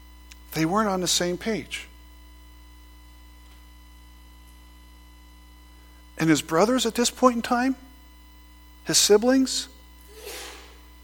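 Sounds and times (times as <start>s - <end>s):
speech: 0.5s - 1.9s, 6.2s - 7.9s, 8.8s - 10.4s
person sneezing: 10.1s - 10.8s.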